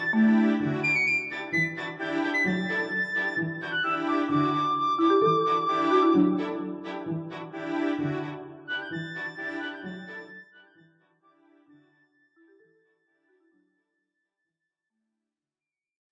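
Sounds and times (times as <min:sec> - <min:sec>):
harp: 0:00.0 - 0:10.5.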